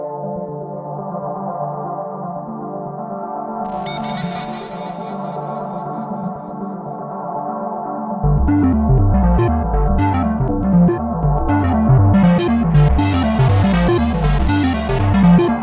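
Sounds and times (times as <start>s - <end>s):
heavy synth track intro: 8.2s - 15.6s.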